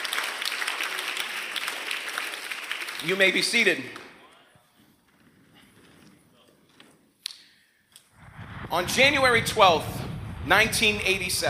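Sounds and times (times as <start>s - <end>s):
many hands clapping: 0.0s - 4.2s
speech: 3.0s - 4.0s, 8.7s - 11.4s.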